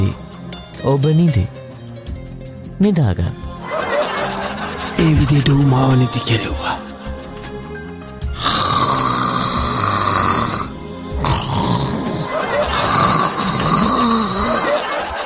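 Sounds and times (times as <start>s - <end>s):
speech: 0.8s - 1.6s, 2.8s - 3.4s, 5.0s - 6.8s
laughter: 3.6s - 8.0s, 12.0s - 15.2s
loud rough snoring from a person under hypnotic sleep: 8.3s - 14.8s.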